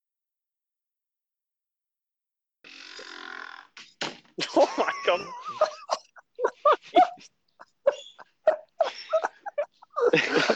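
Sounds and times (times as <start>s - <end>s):
squeaky door creaking: 2.7s - 4.4s
laughter: 4.4s - 10.5s
speech: 4.8s - 5.6s.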